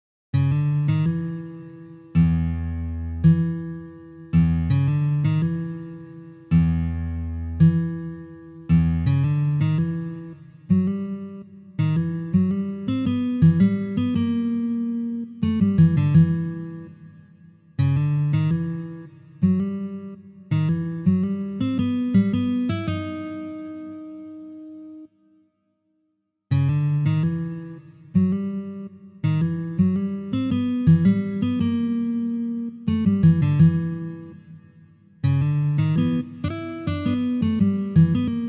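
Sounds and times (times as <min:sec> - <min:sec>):
guitar playing: 0:00.4 - 0:17.2, 0:17.8 - 0:25.1, 0:26.5 - 0:38.4.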